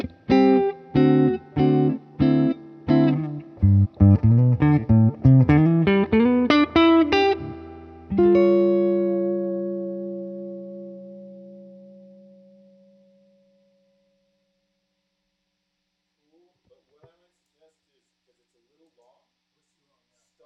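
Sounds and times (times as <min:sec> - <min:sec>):
clean electric guitar: 0:00.0 - 0:14.4.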